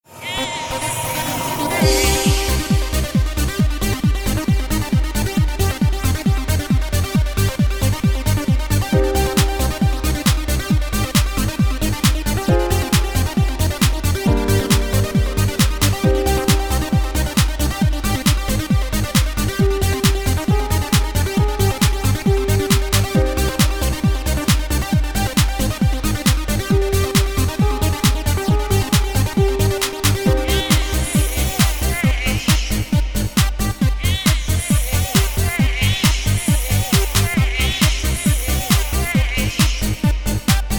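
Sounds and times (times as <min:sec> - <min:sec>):
basic dance music: 0:00.1 - 0:40.7.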